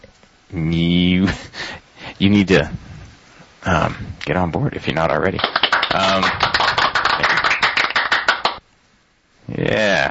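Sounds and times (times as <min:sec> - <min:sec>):
speech: 0:00.5 - 0:01.6, 0:02.2 - 0:02.8, 0:03.6 - 0:06.4, 0:09.6 - 0:10.0
studio audience applause sound effect: 0:05.4 - 0:08.6.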